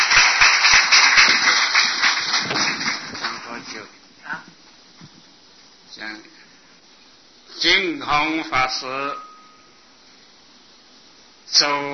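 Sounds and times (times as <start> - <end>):
crowd applauding: 0.0 - 3.9
speech: 8.0 - 9.3, 11.6 - 11.9.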